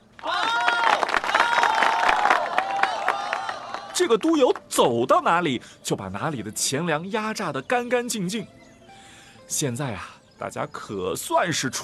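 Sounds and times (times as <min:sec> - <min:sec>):
crowd clapping and cheering: 0:00.0 - 0:04.7
speech: 0:04.0 - 0:08.6, 0:09.5 - 0:11.8.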